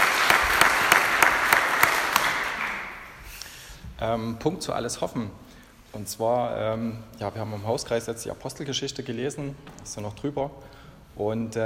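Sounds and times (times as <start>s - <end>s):
audience applause: 0.0s - 3.2s
speech: 4.0s - 11.6s.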